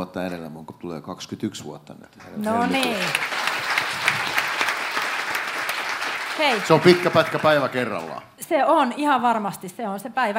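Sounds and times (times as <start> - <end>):
speech: 0.0 - 3.4, 6.4 - 10.3
small group applauding at a gathering celebrating years of sobriety: 2.2 - 8.2.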